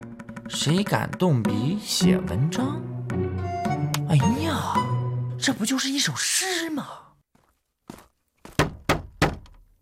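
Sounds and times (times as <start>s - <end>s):
speech: 0.5s - 3.0s, 4.1s - 4.8s, 5.4s - 7.1s
heavy hollow knocking on a wooden door: 8.5s - 9.6s.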